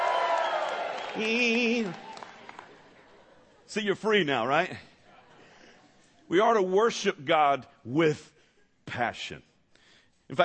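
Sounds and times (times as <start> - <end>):
audience shouting and cheering: 0.0 - 2.8
speech: 1.2 - 2.1, 3.7 - 4.9, 6.3 - 8.3, 8.9 - 9.5, 10.3 - 10.4
laughter: 1.9 - 6.3.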